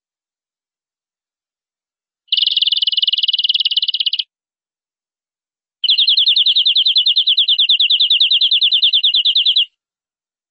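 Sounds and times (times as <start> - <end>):
canary trilling: 2.3 - 4.3, 5.8 - 9.7.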